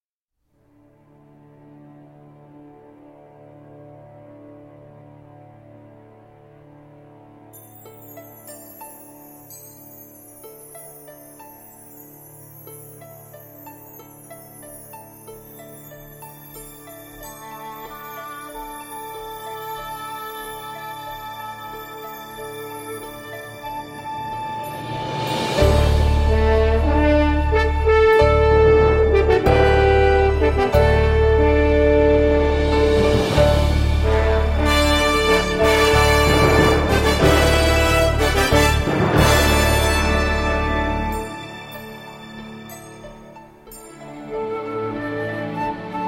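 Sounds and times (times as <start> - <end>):
brass playing a sinfonia: 0.5 - 8.1, 17.0 - 46.0
strings playing a sinfonia: 0.6 - 46.0.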